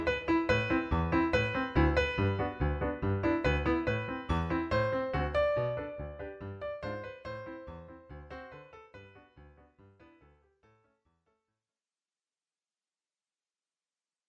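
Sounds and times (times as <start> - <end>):
sub alto instrument: 0.0 - 8.6.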